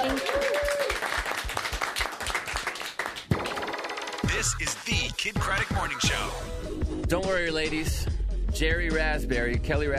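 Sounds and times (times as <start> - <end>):
applause for a pop singer guest on a morning radio show: 0.0 - 3.9
speech: 4.4 - 9.9.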